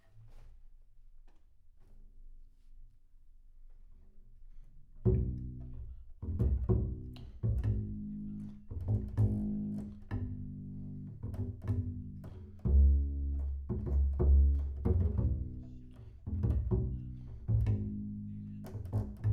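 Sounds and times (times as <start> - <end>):
bass sound: 5.1 - 19.3.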